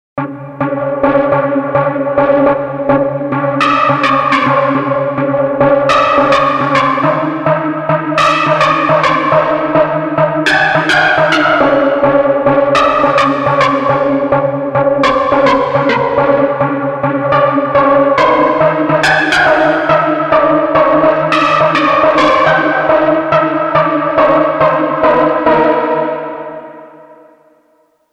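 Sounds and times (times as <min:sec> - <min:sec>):
psychiatric synth lead: 0:00.2 - 0:26.8.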